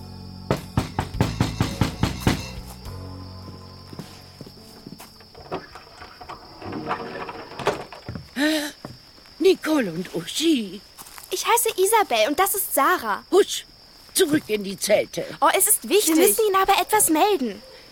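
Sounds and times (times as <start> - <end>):
knocking on a wooden hut door: 0.5 - 2.6
speech: 9.7 - 17.7.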